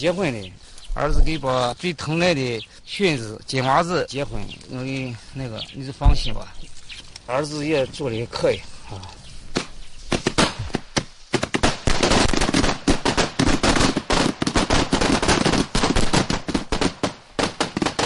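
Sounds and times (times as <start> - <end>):
speech: 0.0 - 9.2
long rapid string of firecrackers bursting: 9.4 - 18.0.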